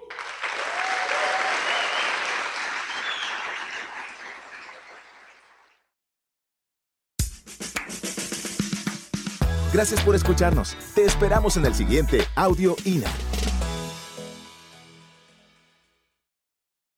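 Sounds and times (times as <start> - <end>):
large crowd applause: 0.0 - 5.7
speech: 9.7 - 13.3.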